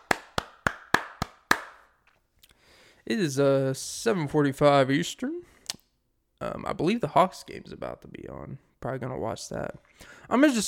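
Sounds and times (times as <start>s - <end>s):
sharp hand claps: 0.0s - 1.9s
speech: 3.1s - 5.5s, 6.4s - 10.6s.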